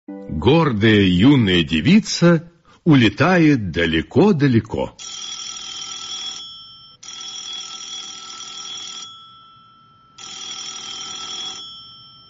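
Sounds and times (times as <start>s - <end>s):
speech: 0.3s - 5.3s
telephone ringing in high-pitched electronic bursts: 5.0s - 12.2s.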